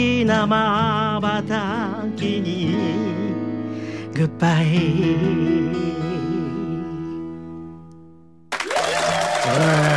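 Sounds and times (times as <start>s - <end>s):
speech: 0.3s - 3.2s, 4.2s - 6.4s
applause: 8.5s - 9.9s.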